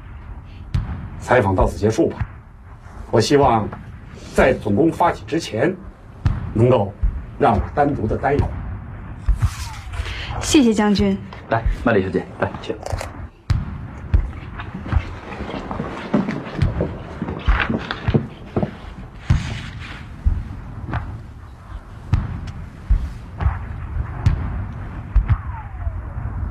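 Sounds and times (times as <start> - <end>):
artillery bombardment booms in a war drama: 0.0 - 26.4
low rumble: 0.0 - 26.4
speech: 1.2 - 2.4, 3.1 - 5.9, 6.6 - 8.6, 10.4 - 13.1.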